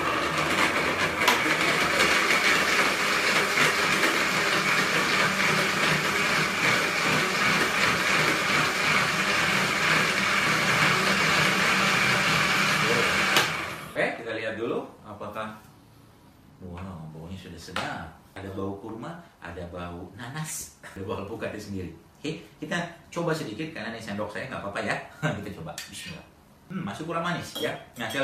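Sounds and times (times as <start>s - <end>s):
blender blending fruit juice: 0.0s - 14.0s
speech: 17.4s - 28.2s.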